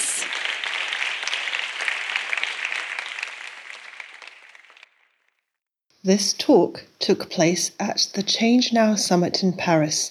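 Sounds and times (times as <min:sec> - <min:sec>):
audience clapping: 0:00.0 - 0:05.3
speech: 0:06.0 - 0:10.1.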